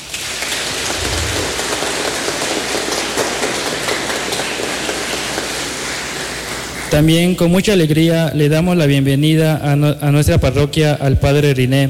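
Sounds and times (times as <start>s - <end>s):
crowd applauding: 0.0s - 7.2s
speech: 6.9s - 11.8s.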